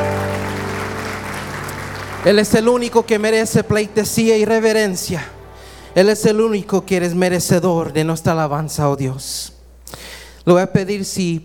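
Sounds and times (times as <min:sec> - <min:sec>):
audience applause: 0:00.0 - 0:03.4
speech: 0:02.2 - 0:05.4, 0:06.0 - 0:11.4.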